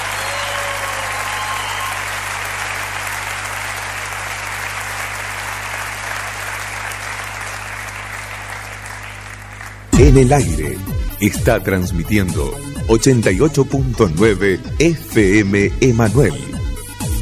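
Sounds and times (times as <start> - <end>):
audience applause: 0.0 - 10.0
speech: 10.1 - 16.5.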